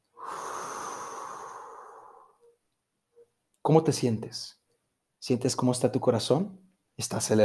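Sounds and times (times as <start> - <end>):
deep breath in through the nose and out through the mouth: 0.0 - 2.6
speech: 3.7 - 4.6, 5.2 - 7.4.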